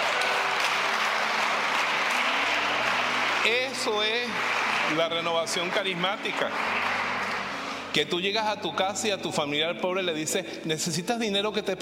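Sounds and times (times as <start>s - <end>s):
audience applause: 0.0s - 8.1s
speech: 3.4s - 7.0s, 7.9s - 11.7s.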